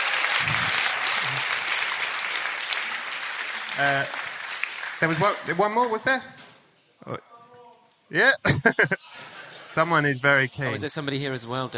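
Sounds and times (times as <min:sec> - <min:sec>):
audience round of applause: 0:00.0 - 0:05.8
crowd cheering: 0:00.0 - 0:05.9
speech: 0:03.8 - 0:04.2, 0:05.0 - 0:06.4, 0:07.0 - 0:07.3, 0:08.1 - 0:09.1, 0:09.7 - 0:11.7
laughter: 0:08.3 - 0:10.2.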